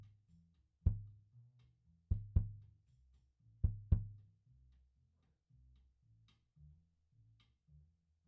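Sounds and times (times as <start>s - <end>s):
kick drum: 0.9s - 1.2s, 2.1s - 2.6s, 3.6s - 4.2s.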